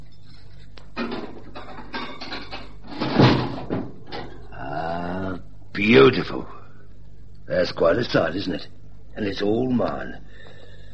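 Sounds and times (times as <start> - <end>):
bank strongbox being unlocked and opened: 1.0 - 4.4
speech: 5.8 - 6.6, 7.5 - 10.5.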